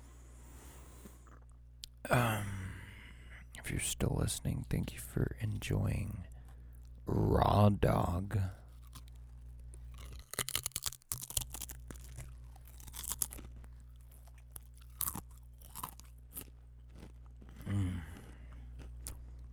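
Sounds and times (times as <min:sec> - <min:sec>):
speech: 0:02.0 - 0:02.6, 0:03.6 - 0:06.3, 0:07.1 - 0:08.6
low vocal murmur: 0:02.0 - 0:03.8
Pringles chips crunching: 0:08.4 - 0:19.5.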